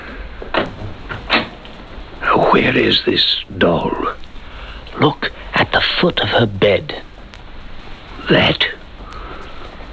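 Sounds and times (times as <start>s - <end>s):
door swinging shut: 0.5s - 1.6s
speech: 2.5s - 4.2s, 5.0s - 5.3s, 6.0s - 7.1s, 8.3s - 8.8s.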